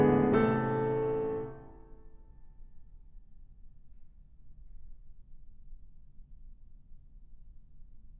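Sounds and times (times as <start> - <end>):
waltz music: 0.0 - 1.8.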